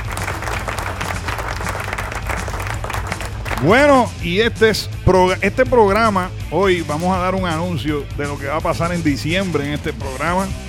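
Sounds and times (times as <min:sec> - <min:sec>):
recorded applause sound effect with crowd noise: 0:00.0 - 0:04.2
speech: 0:03.6 - 0:10.6.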